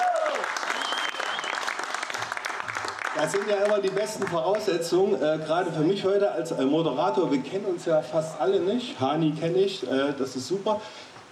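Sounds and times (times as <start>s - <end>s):
audience applause: 0.0s - 4.8s
speech: 3.2s - 11.3s.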